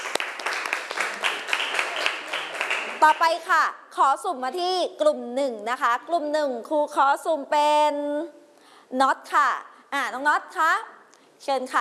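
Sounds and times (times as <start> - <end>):
classroom children clapping for a classmate: 0.0 - 3.1
speech: 3.0 - 11.7.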